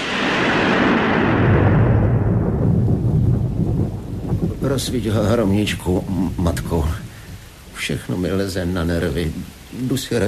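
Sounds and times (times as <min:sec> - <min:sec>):
rolling thunder during a storm: 0:00.0 - 0:07.4
speech: 0:04.8 - 0:07.0, 0:07.8 - 0:10.2.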